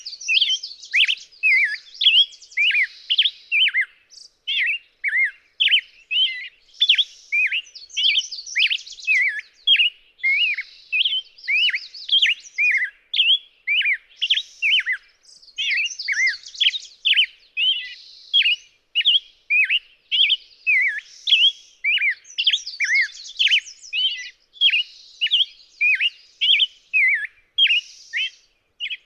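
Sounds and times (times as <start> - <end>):
Black-headed Grosbeak dawn singing in Ola Idaho: 0.0 - 29.0.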